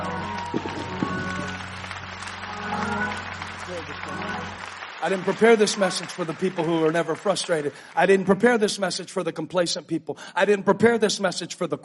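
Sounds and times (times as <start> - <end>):
audience clapping: 0.0 - 9.0
speech: 5.0 - 11.8.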